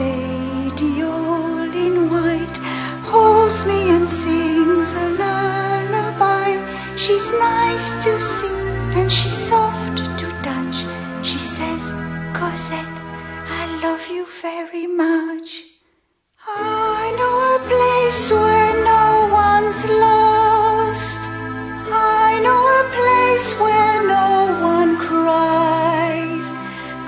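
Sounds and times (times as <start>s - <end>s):
songs: 0.0s - 15.6s, 16.4s - 27.0s.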